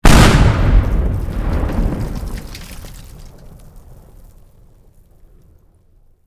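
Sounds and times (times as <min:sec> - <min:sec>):
explosion: 0:00.0 - 0:04.3.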